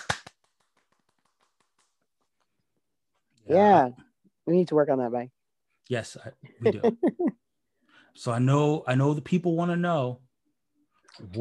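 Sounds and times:
person clapping: 0.0s - 1.9s
speech: 3.5s - 7.4s, 8.2s - 10.2s, 11.2s - 11.3s.

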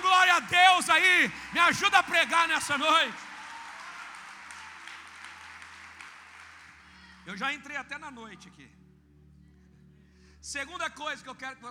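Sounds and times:
audience clapping hands: 0.0s - 7.2s
speech: 1.2s - 3.3s, 7.3s - 8.8s, 10.4s - 11.6s.

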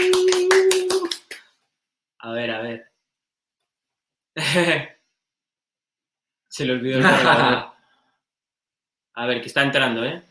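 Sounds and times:
hand clapping: 0.0s - 1.6s
speech: 4.4s - 4.9s, 6.5s - 7.7s, 9.2s - 10.2s
laughter: 7.0s - 7.7s.

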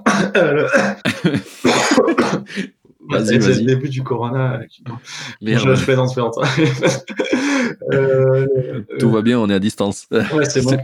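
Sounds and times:
person coughing while choking in the middle of a conversation: 0.0s - 2.5s
speech: 0.2s - 1.9s, 2.6s - 10.8s
laughter: 0.2s - 2.8s, 5.6s - 9.0s.

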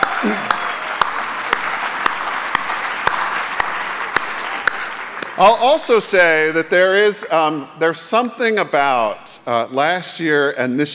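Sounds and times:
audience applause: 0.0s - 6.7s
speech: 0.2s - 0.6s, 5.4s - 10.9s.

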